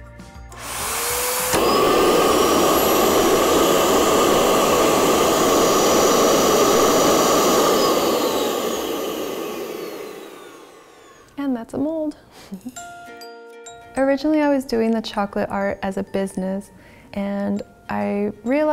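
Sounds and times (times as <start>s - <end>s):
dental vacuum forming machine vacuum motor running: 0.6s - 11.3s
speech: 14.1s - 18.7s.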